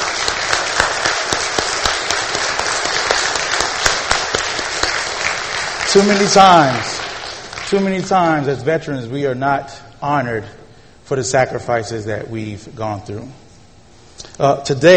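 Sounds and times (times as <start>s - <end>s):
crowd applauding: 0.0s - 8.1s
speech: 5.9s - 6.9s, 7.7s - 13.4s, 14.2s - 14.9s.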